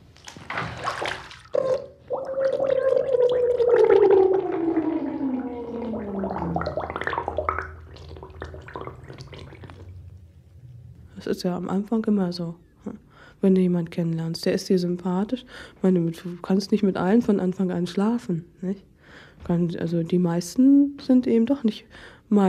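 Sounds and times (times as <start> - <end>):
water drips: 0.1 - 10.3
underwater bubbling and gurgling while diving: 1.5 - 10.1
speech: 11.4 - 12.6, 13.4 - 18.9, 19.5 - 22.4.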